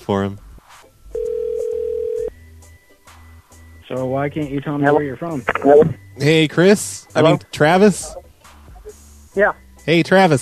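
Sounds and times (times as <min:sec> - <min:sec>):
speech: 0:00.0 - 0:00.4, 0:03.9 - 0:08.2, 0:09.4 - 0:10.3
telephone dial tone after a call is hung up: 0:01.2 - 0:02.3.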